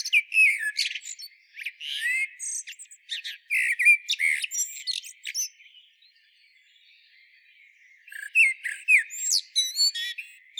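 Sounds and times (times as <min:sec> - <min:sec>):
Eurasian blackbird Turdus merula singing: 0:00.0 - 0:10.5.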